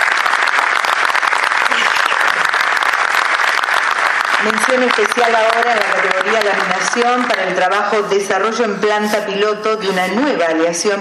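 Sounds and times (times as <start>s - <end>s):
audience applause at an award ceremony: 0.0s - 7.5s
speech: 4.4s - 10.9s.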